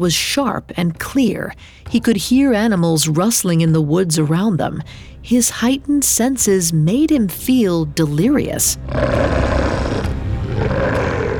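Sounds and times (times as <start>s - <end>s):
speech: 0.0s - 10.7s
low threatening wolf growl: 8.8s - 11.3s.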